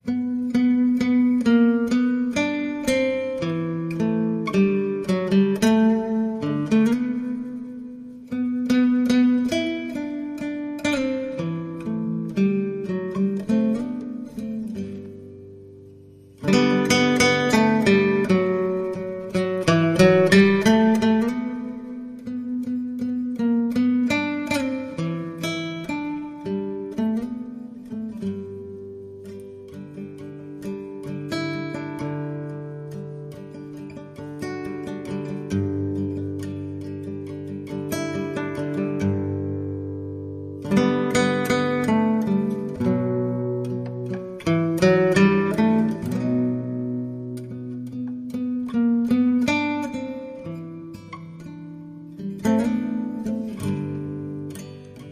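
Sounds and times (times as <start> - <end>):
Christmas carol played on guitar: 0.0 - 55.0.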